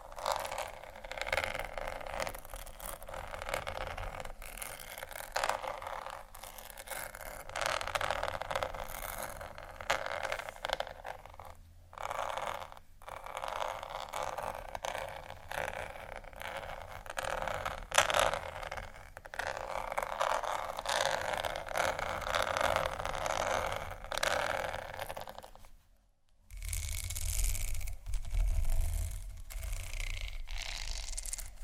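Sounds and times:
crackly scratching strokes: 0.0s - 25.8s, 26.5s - 31.6s.

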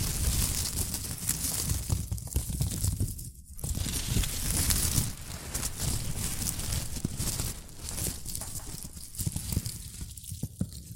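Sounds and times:
shredded tissue and packing peanuts rustling: 0.0s - 2.9s, 3.5s - 10.2s.

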